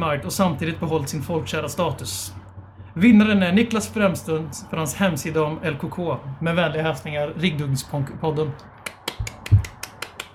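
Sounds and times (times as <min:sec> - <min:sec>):
speech: 0:00.0 - 0:02.4, 0:03.0 - 0:08.8
crisp claps: 0:08.8 - 0:10.3.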